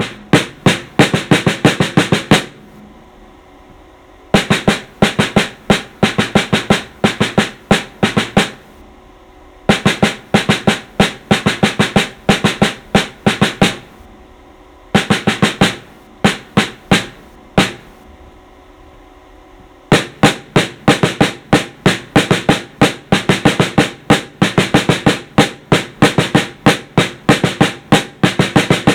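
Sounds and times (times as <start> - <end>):
snare drum solo: 0.0 - 2.7, 4.3 - 8.7, 9.7 - 14.0, 15.0 - 18.0, 19.9 - 28.9.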